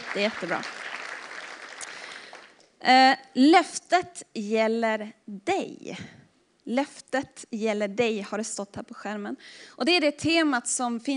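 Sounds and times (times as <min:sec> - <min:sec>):
audience applause: 0:00.0 - 0:02.6
speech: 0:00.1 - 0:00.8, 0:02.8 - 0:11.1.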